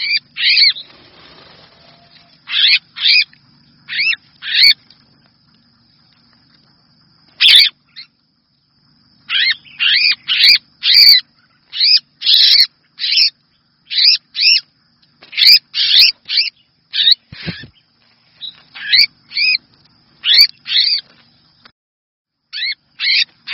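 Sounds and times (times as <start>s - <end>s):
red-whiskered bulbul distress call: 0.0s - 4.8s, 7.3s - 8.2s, 9.2s - 19.6s, 20.2s - 21.1s, 22.5s - 23.5s.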